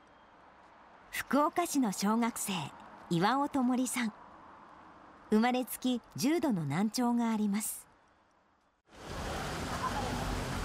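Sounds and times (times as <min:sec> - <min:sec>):
speech: 0:01.3 - 0:04.2, 0:05.3 - 0:07.9
car passing by: 0:08.9 - 0:10.6.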